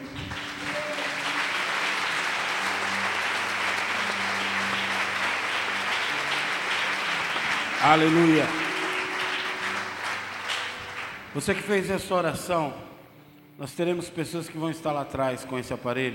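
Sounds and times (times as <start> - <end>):
audience applauding: 0.0 - 11.8
speech: 7.8 - 8.6, 11.4 - 12.8, 13.6 - 16.1.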